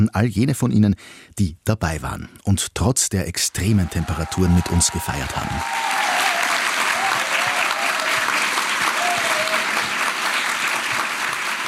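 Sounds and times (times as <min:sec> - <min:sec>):
speech: 0:00.0 - 0:06.3
audience applause: 0:03.8 - 0:11.6.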